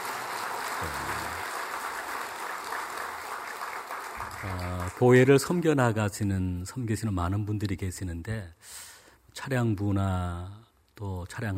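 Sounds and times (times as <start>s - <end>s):
audience applauding: 0.0s - 5.5s
speech: 0.8s - 1.1s, 4.4s - 11.5s.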